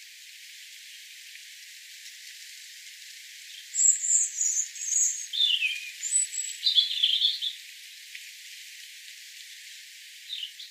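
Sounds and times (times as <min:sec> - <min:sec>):
European robin song: 0:03.5 - 0:07.6, 0:10.3 - 0:10.7.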